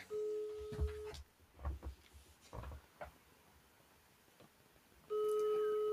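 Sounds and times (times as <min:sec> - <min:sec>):
telephone ringback tone: 0:00.1 - 0:01.2, 0:05.1 - 0:05.9
faint knocks and rustles: 0:00.6 - 0:03.2.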